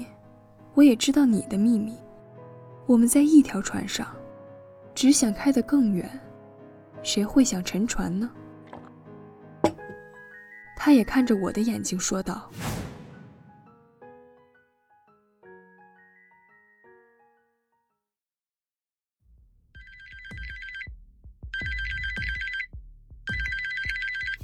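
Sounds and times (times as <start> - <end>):
speech: 0.8 - 2.0, 2.9 - 4.2, 5.0 - 6.3, 7.0 - 8.4, 10.8 - 12.7
mobile phone ringtone: 19.8 - 20.9, 21.6 - 22.7, 23.3 - 24.4.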